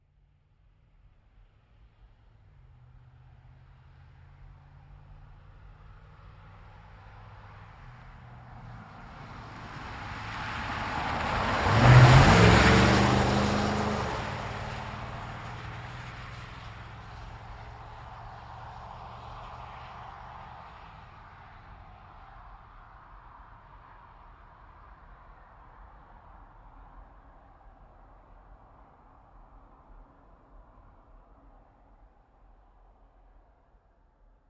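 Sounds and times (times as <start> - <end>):
GMC Savana truck passing by a corner fast: 8.3 - 21.3.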